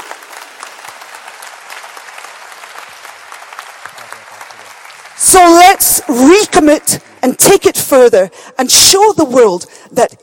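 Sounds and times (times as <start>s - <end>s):
audience applause: 0.0s - 7.1s
speech: 5.2s - 10.2s.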